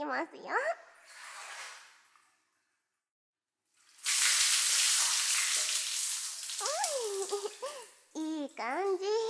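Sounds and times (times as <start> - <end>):
speech: 0.0 - 1.2, 8.6 - 9.2
hot water being poured to rinse: 3.8 - 8.2.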